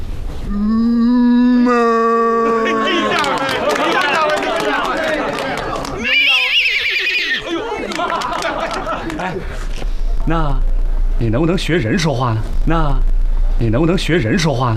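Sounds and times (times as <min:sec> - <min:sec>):
voice imitating horse whinny: 0:00.5 - 0:02.6, 0:06.1 - 0:07.4
voice imitating cow mooing: 0:00.5 - 0:02.9
laughter: 0:01.7 - 0:10.5
speech: 0:10.3 - 0:14.7.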